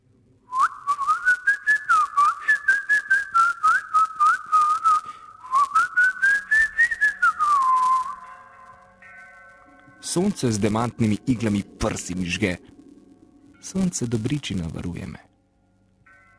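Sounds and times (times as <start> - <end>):
person whistling a warbling birdsong-like melody: 0.5 - 8.2
speech: 10.1 - 12.7, 13.6 - 15.3.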